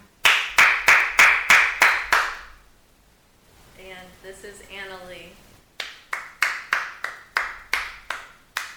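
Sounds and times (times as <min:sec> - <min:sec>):
slow sarcastic-sounding hand claps: 0:00.2 - 0:02.5, 0:05.8 - 0:08.7.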